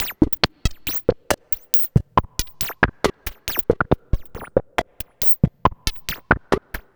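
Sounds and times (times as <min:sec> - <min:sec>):
electronic percussion: 0:00.0 - 0:06.9.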